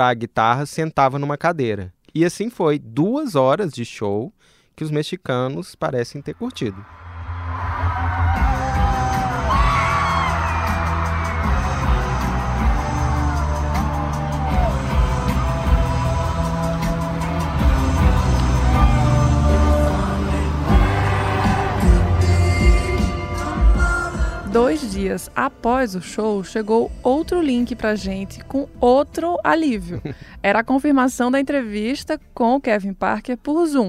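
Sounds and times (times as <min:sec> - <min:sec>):
speech: 0:00.0 - 0:07.0, 0:24.6 - 0:33.8
concert crowd cheering and whooping: 0:06.8 - 0:24.0
laughter: 0:29.8 - 0:30.2.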